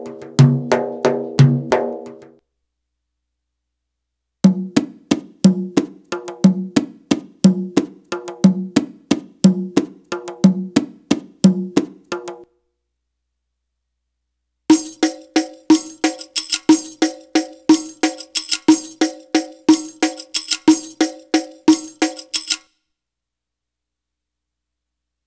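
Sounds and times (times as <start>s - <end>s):
Arabic rhythm percussion: 0.0s - 2.3s, 4.5s - 12.4s, 14.7s - 22.7s.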